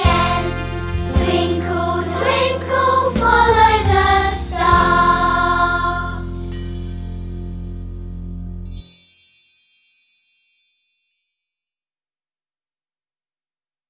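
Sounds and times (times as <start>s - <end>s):
vocals: 0.0s - 6.4s.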